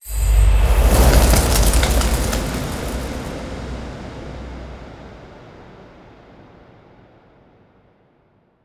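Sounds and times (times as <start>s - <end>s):
fire in a temple room: 0.1s - 3.6s.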